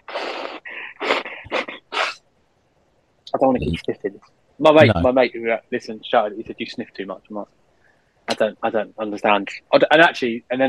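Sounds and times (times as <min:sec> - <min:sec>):
person blowing nose: 0:00.0 - 0:02.2
speech: 0:03.4 - 0:07.6, 0:08.3 - 0:10.6.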